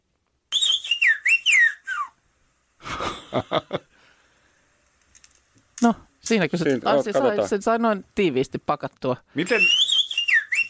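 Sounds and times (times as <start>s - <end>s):
whistled language from a small Greek mountain village: 0.5s - 2.2s, 9.4s - 10.6s
laughter: 2.8s - 3.9s
speech: 3.4s - 3.8s, 5.8s - 9.8s.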